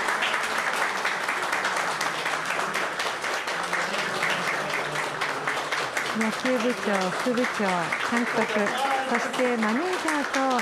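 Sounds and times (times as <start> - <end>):
applause from staff lining a corridor: 0.0 - 10.6
speech: 6.2 - 10.6.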